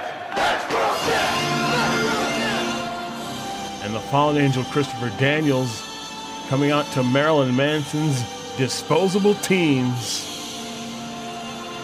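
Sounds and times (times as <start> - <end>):
wrestling crowd cheering: 0.0 - 3.0
speech: 3.8 - 5.8, 6.5 - 10.3.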